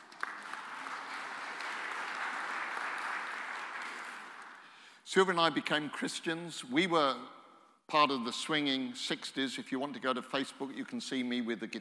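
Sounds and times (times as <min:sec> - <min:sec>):
audience applause: 0:00.0 - 0:04.7
speech: 0:05.1 - 0:11.8.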